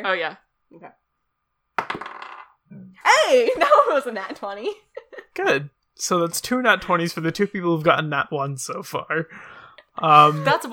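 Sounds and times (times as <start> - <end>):
speech: 0.0 - 1.0, 3.2 - 10.7
small die hitting and rattling on a hard surface: 1.8 - 2.6
laughter: 3.1 - 5.6, 10.0 - 10.7.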